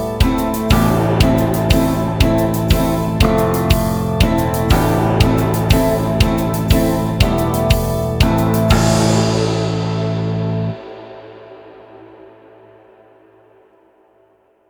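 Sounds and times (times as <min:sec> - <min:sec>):
backing track: 0:00.0 - 0:11.6.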